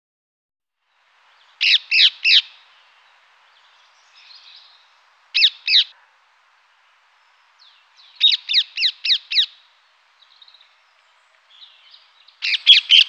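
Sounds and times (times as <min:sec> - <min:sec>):
rose-ringed parakeet harsh squawking and screeching: 0:01.6 - 0:02.6, 0:05.3 - 0:06.2, 0:07.6 - 0:10.5, 0:11.5 - 0:13.0.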